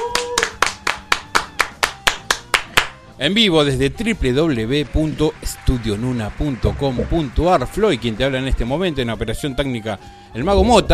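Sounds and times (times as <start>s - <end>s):
applause: 0.0s - 3.0s, 4.3s - 8.9s
speech: 3.2s - 10.9s.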